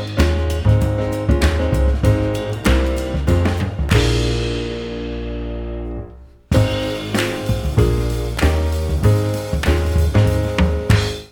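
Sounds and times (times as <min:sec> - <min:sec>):
praise music backing track: 0:00.0 - 0:11.2.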